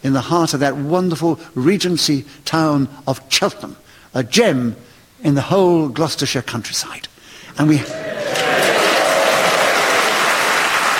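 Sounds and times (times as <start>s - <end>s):
speech: 0.0s - 8.4s
theatre audience applauding: 7.8s - 10.9s.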